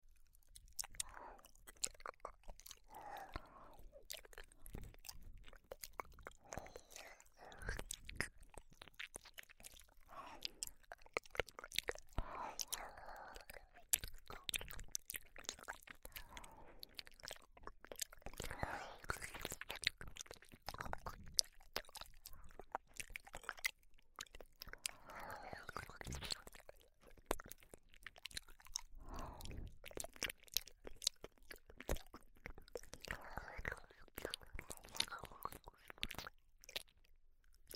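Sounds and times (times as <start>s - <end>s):
licking of both ears: 0.4s - 36.9s.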